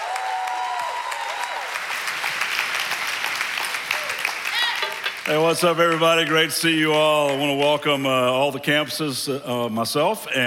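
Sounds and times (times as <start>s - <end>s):
church audience applauding a teaching pastor: 0.0s - 8.2s
speech: 5.3s - 10.4s.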